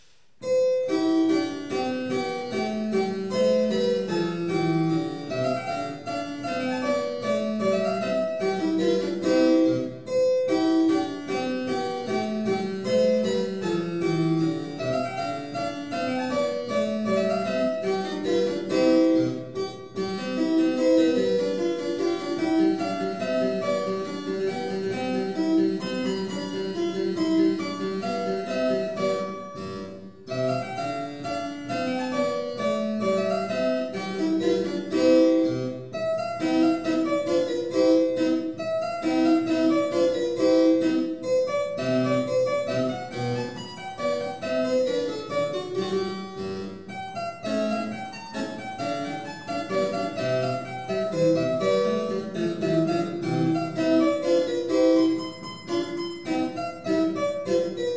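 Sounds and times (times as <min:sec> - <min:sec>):
harpsichord: 0:00.4 - 0:57.9.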